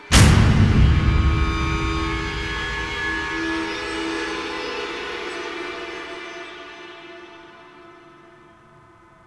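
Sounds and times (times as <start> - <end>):
epilogue music sting: 0.0 - 5.9.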